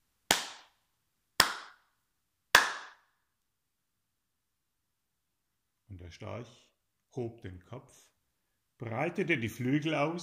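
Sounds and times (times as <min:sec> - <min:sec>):
people clapping hands: 0:00.3 - 0:00.8, 0:01.4 - 0:01.8, 0:02.5 - 0:03.0
speech: 0:06.1 - 0:08.2, 0:08.8 - 0:10.2.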